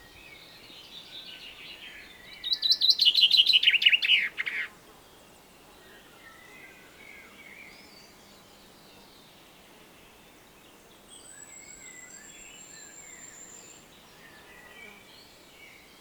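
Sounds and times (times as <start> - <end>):
Common chaffinch Fringilla coelebs song: 0.0 - 15.9.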